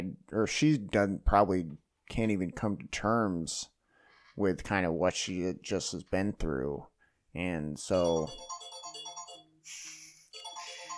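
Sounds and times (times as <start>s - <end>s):
speech: 0.4s - 3.8s, 4.4s - 8.6s
phone ringtone of an incoming call: 8.0s - 10.9s.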